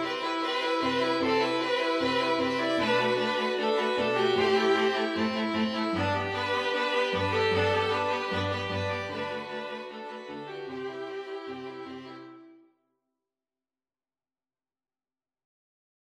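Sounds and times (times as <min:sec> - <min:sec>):
string quintet playing Indian music: 0:00.0 - 0:12.6.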